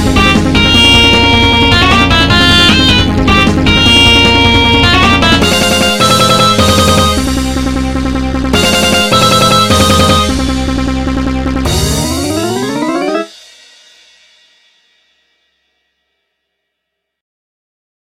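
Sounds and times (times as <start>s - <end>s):
battle music: 0.0s - 13.6s.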